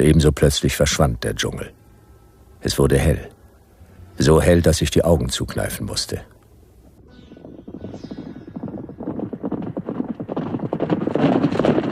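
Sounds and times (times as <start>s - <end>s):
speech: 0.0s - 1.8s, 2.6s - 3.4s, 4.2s - 6.3s
hoofbeats of a stolen horse clip-clopping: 8.6s - 11.9s.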